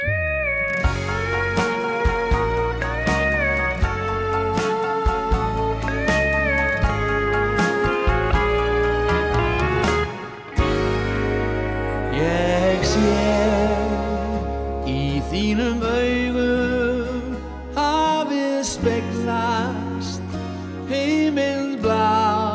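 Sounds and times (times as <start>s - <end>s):
instrumental song with steady beat, deep bass and melodic lines: 0.0s - 22.5s.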